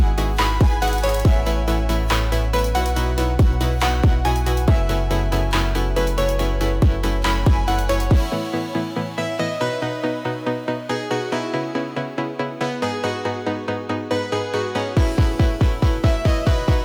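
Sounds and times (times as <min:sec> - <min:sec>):
emotional future bass music: 0:00.0 - 0:16.8.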